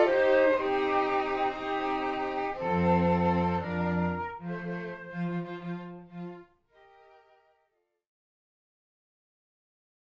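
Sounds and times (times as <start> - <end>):
string quartet playing a slow wedding march: 0.0 - 7.4.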